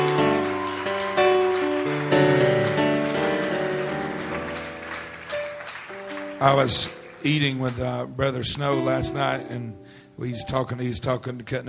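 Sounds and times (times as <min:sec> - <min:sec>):
audience hand clapping: 0:00.0 - 0:08.4
speech: 0:06.4 - 0:11.6.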